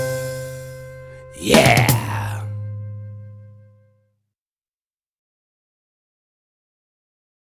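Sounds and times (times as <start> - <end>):
alphabet rap: 1.4 - 2.5.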